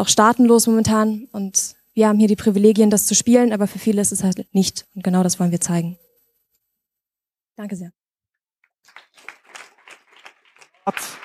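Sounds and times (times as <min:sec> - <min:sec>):
speech: 0:00.0 - 0:06.0, 0:07.6 - 0:08.0, 0:10.9 - 0:11.2
audience applause: 0:08.8 - 0:11.2.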